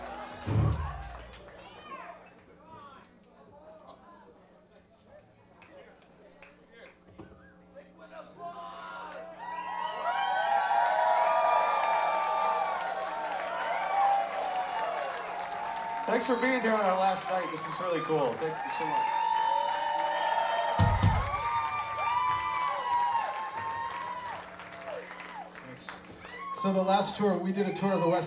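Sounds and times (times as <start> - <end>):
large crowd standing ovation applause: 0.0 - 3.0, 9.0 - 28.2
crowd cheering with shouts and whoops: 0.0 - 4.4, 7.8 - 28.2
speech: 16.2 - 19.2, 26.6 - 28.2.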